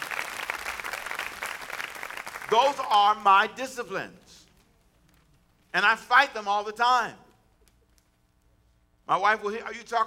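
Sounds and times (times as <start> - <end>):
audience hand clapping: 0.0 - 3.2
speech: 2.5 - 4.4, 5.7 - 7.2, 9.1 - 10.0.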